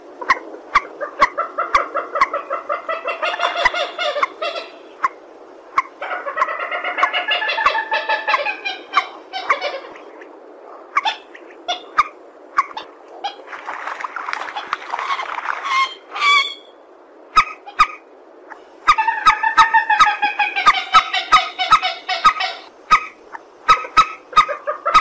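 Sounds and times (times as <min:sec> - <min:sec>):
purple swamphen cackling: 0:00.0 - 0:13.6, 0:14.3 - 0:24.9.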